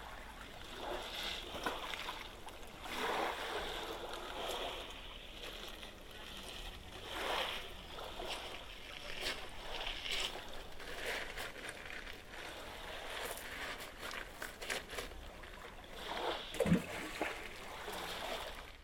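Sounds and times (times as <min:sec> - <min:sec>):
gentle waves: 0:00.0 - 0:18.8.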